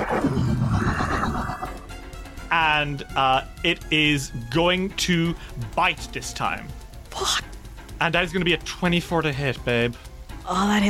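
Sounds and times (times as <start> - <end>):
person vocally imitating a monster's roar: 0.0 - 1.9
speech: 2.5 - 10.8.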